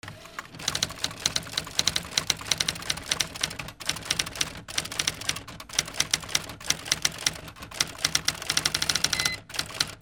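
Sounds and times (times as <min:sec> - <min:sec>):
office ambience: 0:00.0 - 0:10.0.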